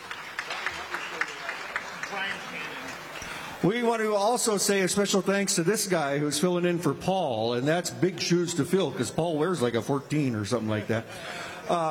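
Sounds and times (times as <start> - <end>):
audience applause: 0.0 - 3.4
speech: 3.6 - 11.8.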